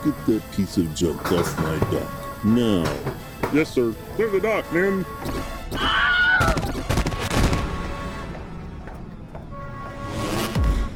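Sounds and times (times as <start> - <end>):
speech: 0.0 - 6.6
gunfire: 6.5 - 7.9.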